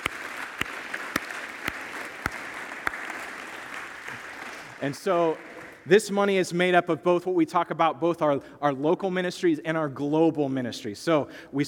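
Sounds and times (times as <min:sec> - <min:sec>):
audience applause: 0:00.0 - 0:05.8
speech: 0:04.8 - 0:11.6.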